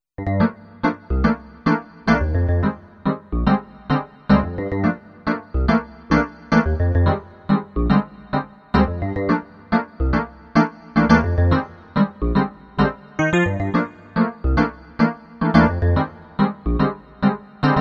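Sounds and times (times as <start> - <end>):
Korg M1R synthesizer: 0.2 - 17.8.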